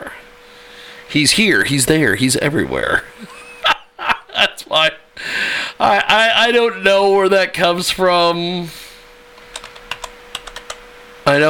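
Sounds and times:
speech: 0:01.1 - 0:03.4, 0:04.7 - 0:05.0, 0:05.8 - 0:08.8, 0:11.3 - 0:11.4
laughter: 0:03.1 - 0:04.9
typing a search term on a computer keyboard: 0:09.4 - 0:10.8.

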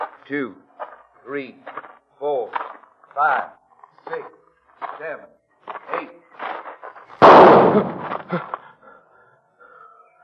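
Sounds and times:
speech: 0:00.3 - 0:00.6, 0:01.2 - 0:04.4, 0:05.0 - 0:06.2, 0:07.7 - 0:08.5
pistol shot fired in a duel: 0:07.2 - 0:08.3.

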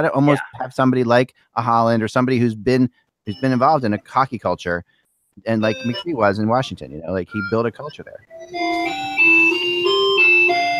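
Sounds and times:
speech: 0:00.0 - 0:09.1
clock chiming the hour: 0:08.4 - 0:10.7.

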